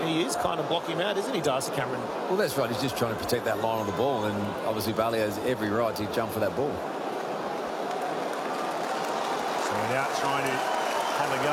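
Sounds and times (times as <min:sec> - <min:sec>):
speech: 0:00.3 - 0:07.0, 0:09.8 - 0:11.5
crowd applause at a stadium: 0:06.9 - 0:11.5.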